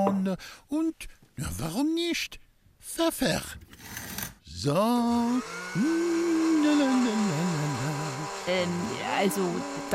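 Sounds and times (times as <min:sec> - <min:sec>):
speech: 0:00.1 - 0:07.2, 0:08.5 - 0:09.9
electric mixer mixing gingerbread dough with spices: 0:04.9 - 0:09.9.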